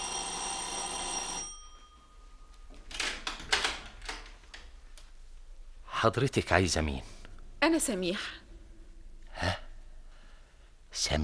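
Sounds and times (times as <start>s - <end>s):
electric doorbell ringing: 0.0s - 2.7s
speech: 6.0s - 8.4s, 11.0s - 11.2s.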